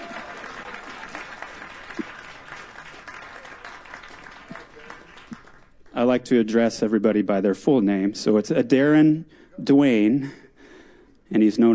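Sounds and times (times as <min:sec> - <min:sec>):
audience applause: 0:00.0 - 0:05.8
speech: 0:06.0 - 0:10.4, 0:11.3 - 0:11.7.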